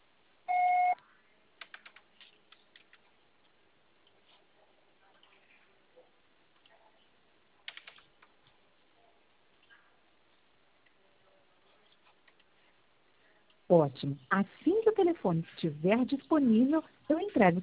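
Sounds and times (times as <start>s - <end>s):
voicemail recording beep: 0.5s - 1.0s
soft irregular keyboard typing clicks: 1.6s - 3.0s, 7.6s - 8.3s
speech: 13.7s - 17.6s.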